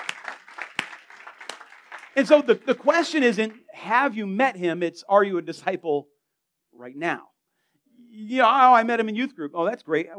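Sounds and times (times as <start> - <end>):
group of people clapping scattered hand claps: 0.0 - 3.6
speech: 2.2 - 6.1, 6.8 - 7.3, 8.0 - 10.1.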